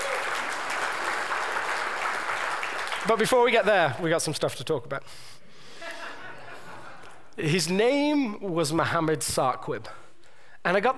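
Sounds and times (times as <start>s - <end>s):
audience clapping: 0.0s - 4.0s
speech: 3.0s - 5.6s, 7.4s - 10.0s, 10.6s - 10.9s
laughter: 5.7s - 7.3s.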